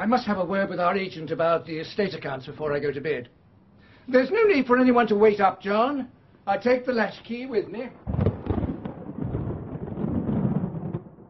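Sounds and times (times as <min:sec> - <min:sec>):
speech: 0:00.0 - 0:03.4, 0:04.0 - 0:08.2
thunder clap and rumble: 0:08.0 - 0:11.2.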